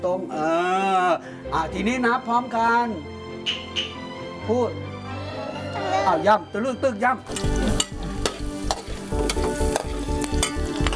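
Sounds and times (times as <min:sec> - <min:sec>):
speech: 0:00.0 - 0:04.9, 0:05.8 - 0:07.6
noodles sizzling in a hot wok: 0:07.3 - 0:10.9.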